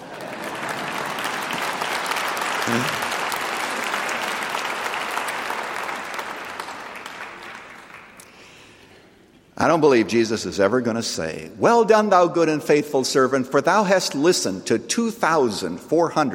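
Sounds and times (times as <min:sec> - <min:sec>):
audience clapping: 0:00.0 - 0:08.6
speech: 0:02.7 - 0:03.0, 0:09.6 - 0:16.3.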